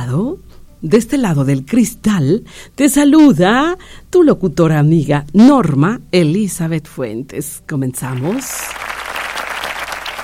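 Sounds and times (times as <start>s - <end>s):
speech: 0.1s - 8.8s
crowd applauding in welcome: 8.2s - 10.2s.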